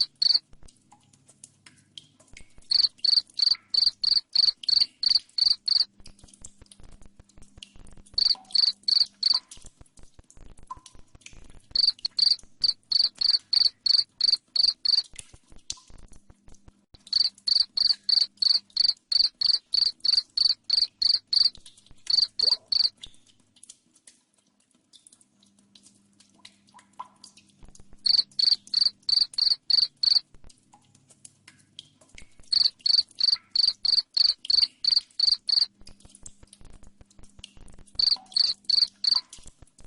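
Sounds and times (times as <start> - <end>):
cricket chirping in sharp high pulses: 0.0 - 0.4, 2.7 - 5.9, 8.2 - 9.4, 11.8 - 15.0, 17.1 - 21.5, 22.1 - 22.9, 28.0 - 30.2, 32.5 - 35.7, 38.0 - 39.2
soft ticks: 0.0 - 39.8.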